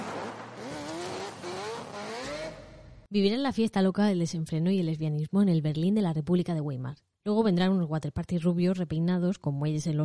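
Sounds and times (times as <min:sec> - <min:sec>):
car tires skidding during getaway: 0:00.0 - 0:02.7
speech: 0:03.1 - 0:10.0.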